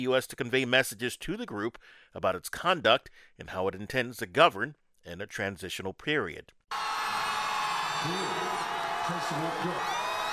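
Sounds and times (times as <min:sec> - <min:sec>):
speech: 0:00.0 - 0:06.9, 0:08.0 - 0:10.0
individual shouts and whoops: 0:06.7 - 0:10.3
large crowd cheering: 0:06.7 - 0:10.3.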